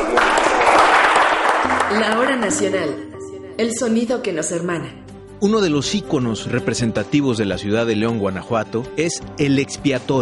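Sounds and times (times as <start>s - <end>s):
crowd clapping: 0.0s - 3.0s
speech: 1.9s - 10.2s.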